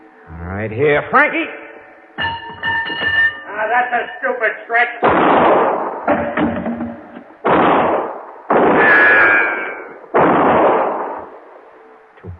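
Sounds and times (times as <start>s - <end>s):
speech: 0.3s - 1.6s, 2.2s - 6.2s
gunshots: 5.0s - 11.5s.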